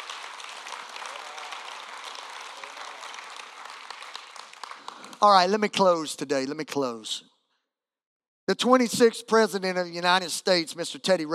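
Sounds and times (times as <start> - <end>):
audience clapping hands: 0.0 - 6.2
speech: 5.2 - 7.3, 8.5 - 11.3.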